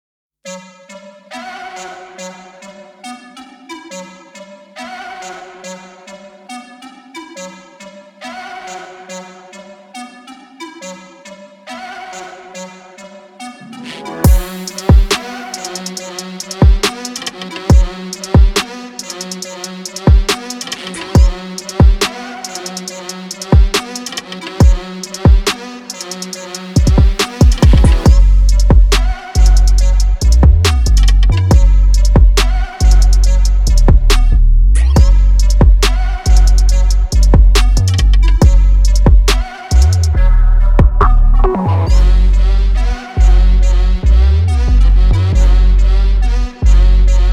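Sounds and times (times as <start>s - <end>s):
instrumental music: 13.4s - 34.3s, 34.9s - 47.3s.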